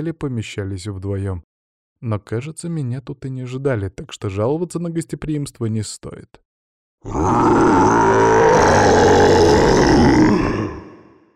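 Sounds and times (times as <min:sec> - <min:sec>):
speech: 0:00.0 - 0:10.8
angry creature's rumbling roar: 0:07.0 - 0:11.2.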